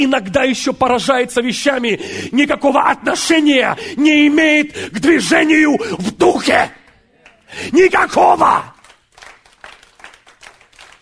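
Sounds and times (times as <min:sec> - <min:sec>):
speech: 0:00.0 - 0:06.8, 0:07.5 - 0:08.7
audience members clapping during a Russian-language sermon: 0:06.8 - 0:07.5, 0:08.4 - 0:11.0.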